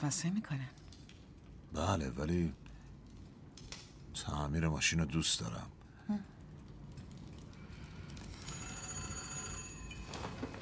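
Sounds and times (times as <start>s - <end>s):
speech: 0.0s - 0.8s, 1.7s - 2.7s, 4.2s - 6.4s
telephone bell ringing: 8.4s - 10.4s.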